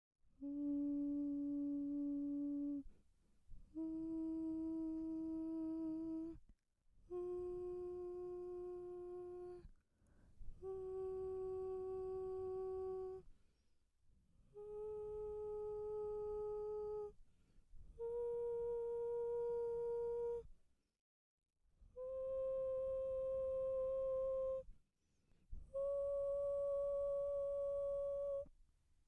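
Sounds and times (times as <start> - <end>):
person humming: 0.4 - 2.9, 3.7 - 6.4, 7.1 - 9.7, 10.6 - 13.3, 14.6 - 17.2, 18.0 - 20.5, 22.0 - 24.6, 25.7 - 28.5.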